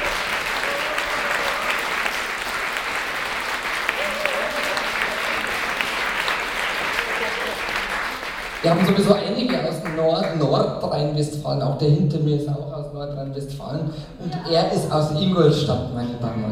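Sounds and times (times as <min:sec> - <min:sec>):
audience applause: 0:00.0 - 0:10.4
speech: 0:08.6 - 0:16.5.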